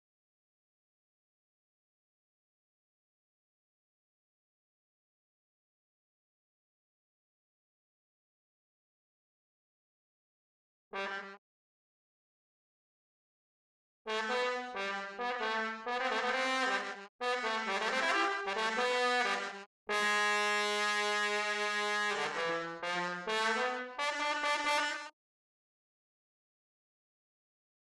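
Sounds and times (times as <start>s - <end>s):
trombone: 11.0s - 11.4s, 14.1s - 25.1s.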